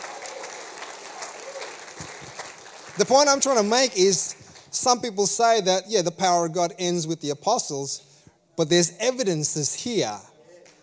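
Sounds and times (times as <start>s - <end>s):
church congregation applauding: 0.0s - 5.1s
speech: 3.0s - 10.3s.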